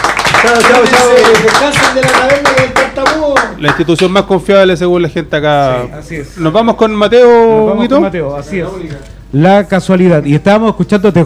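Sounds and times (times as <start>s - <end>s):
applause: 0.0s - 4.1s
speech: 0.4s - 11.2s.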